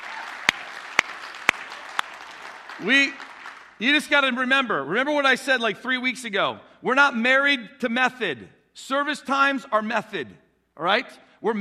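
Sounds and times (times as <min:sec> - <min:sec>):
hand claps: 0:00.0 - 0:03.8
speech: 0:02.8 - 0:11.5.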